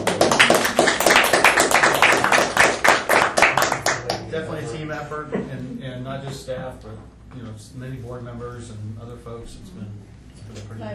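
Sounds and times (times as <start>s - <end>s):
applause: 0.0s - 4.2s
speech: 5.0s - 10.9s.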